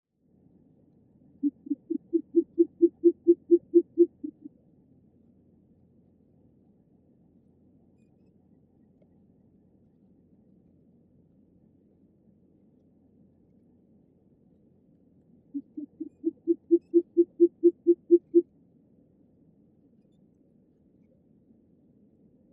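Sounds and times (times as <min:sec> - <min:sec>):
short-eared owl low muffled hoots: 0:01.4 - 0:04.5, 0:15.5 - 0:18.4.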